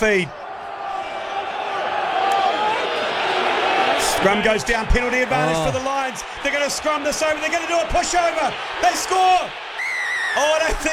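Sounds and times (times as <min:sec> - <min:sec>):
speech: 0:00.0 - 0:00.4, 0:04.2 - 0:09.7, 0:10.3 - 0:10.9
stadium crowd cheering at rugby match: 0:00.0 - 0:10.9
whistles: 0:09.8 - 0:10.4.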